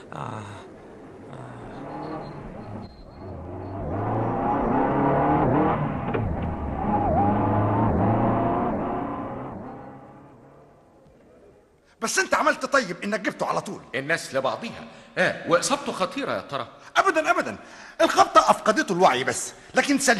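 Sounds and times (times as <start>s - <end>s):
speech: 0.1s - 0.7s, 12.1s - 20.1s
car engine driving in radio drama: 0.8s - 10.9s.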